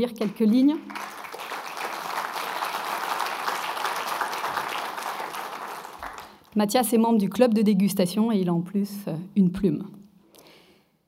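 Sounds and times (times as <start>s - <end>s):
speech: 0.0s - 1.1s, 6.6s - 10.0s
audience applause: 0.8s - 6.5s.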